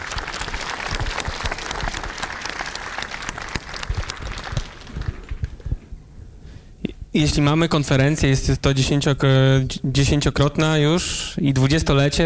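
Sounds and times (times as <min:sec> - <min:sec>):
audience applause: 0:00.0 - 0:05.6
speech: 0:07.2 - 0:12.2.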